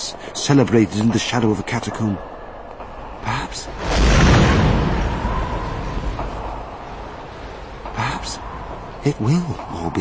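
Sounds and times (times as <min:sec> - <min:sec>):
speech: 0:00.1 - 0:02.4, 0:03.2 - 0:03.8, 0:09.0 - 0:09.9
bombs exploding outside: 0:03.8 - 0:06.2.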